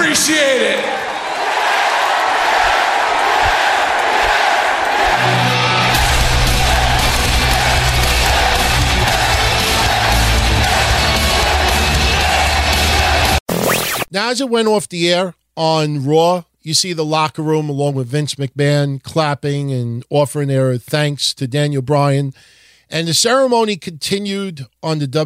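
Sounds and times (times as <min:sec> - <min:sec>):
arena crowd chanting yes: 0:00.0 - 0:13.4
speech: 0:00.2 - 0:01.0, 0:14.2 - 0:25.2.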